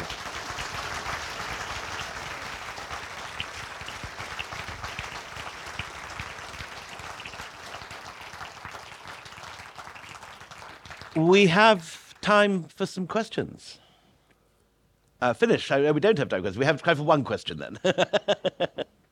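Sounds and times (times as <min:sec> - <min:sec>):
audience applause: 0:00.0 - 0:11.3
speech: 0:11.2 - 0:13.8, 0:15.2 - 0:18.9
laughter: 0:17.8 - 0:18.9.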